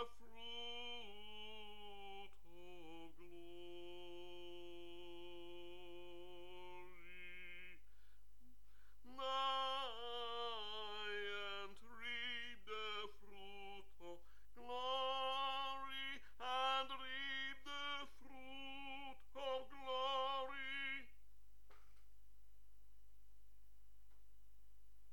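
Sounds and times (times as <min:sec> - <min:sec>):
tenor singing: 0:00.0 - 0:07.8, 0:09.0 - 0:21.2.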